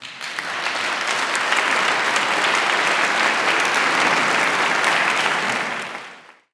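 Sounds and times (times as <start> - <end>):
clapping: 0.0 - 6.5.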